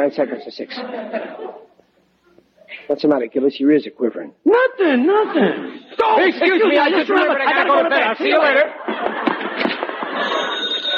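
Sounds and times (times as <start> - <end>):
speech: 0.0 - 1.6, 2.7 - 8.8
laughter: 0.7 - 1.8, 5.1 - 10.9
telephone ringing: 10.0 - 10.9.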